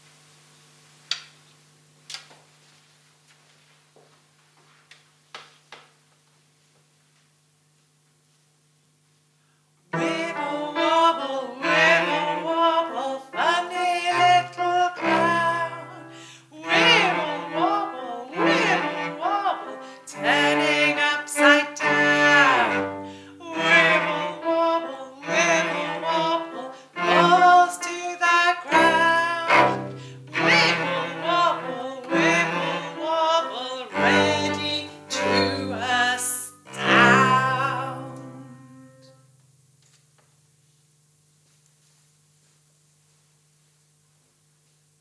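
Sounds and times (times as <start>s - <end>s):
vocals with backing music: 10.0s - 38.9s.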